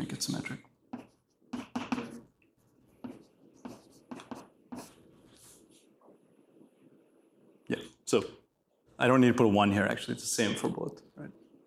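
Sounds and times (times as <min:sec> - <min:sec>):
speech: 0:00.2 - 0:00.7, 0:08.1 - 0:08.4, 0:09.0 - 0:11.4
pen or marker handwriting strokes: 0:00.9 - 0:05.8.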